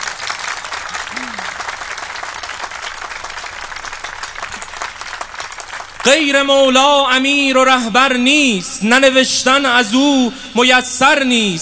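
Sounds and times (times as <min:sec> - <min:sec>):
audience clapping at a devotional poetry recitation honoring Imam Ali: 0:00.0 - 0:06.9
speech: 0:06.0 - 0:11.5.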